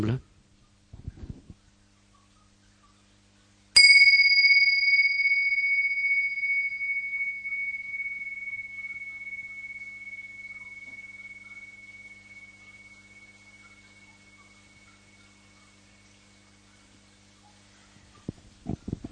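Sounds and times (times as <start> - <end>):
bell chime: 3.8 - 15.7.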